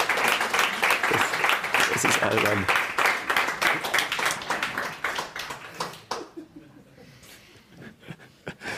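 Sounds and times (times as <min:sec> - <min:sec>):
crowd hand clapping applause: 0:00.0 - 0:06.5
speech: 0:02.0 - 0:02.8.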